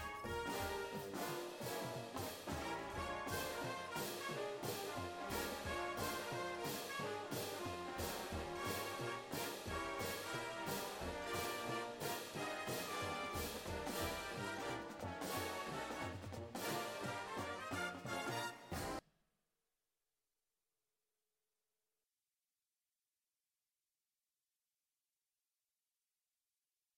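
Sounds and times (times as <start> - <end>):
cymbals: 0.0 - 19.0
music: 0.0 - 19.0.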